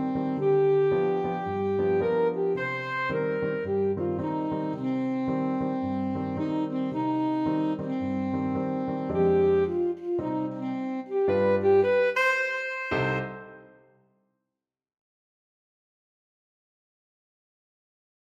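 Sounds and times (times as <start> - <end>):
saxophone melody: 0.0 - 13.9.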